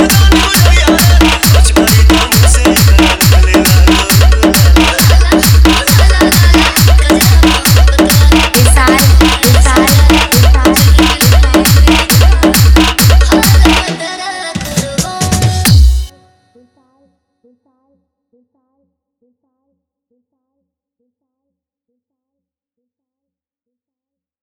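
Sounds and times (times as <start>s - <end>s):
EDM mix: 0.0s - 16.1s.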